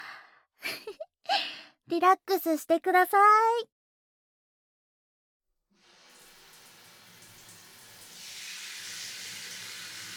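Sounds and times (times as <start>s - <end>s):
speech: 1.9s - 3.8s
shower water running: 5.8s - 10.1s.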